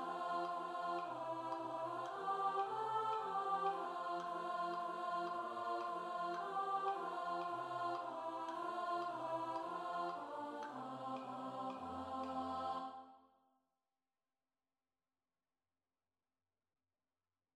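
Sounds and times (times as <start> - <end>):
alto study: 0.0 - 13.1.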